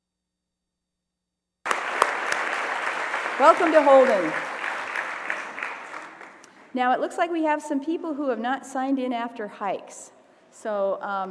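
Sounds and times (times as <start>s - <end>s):
audience applause for visitors at Holden: 1.7s - 6.8s
speech: 3.4s - 4.5s, 6.8s - 11.2s.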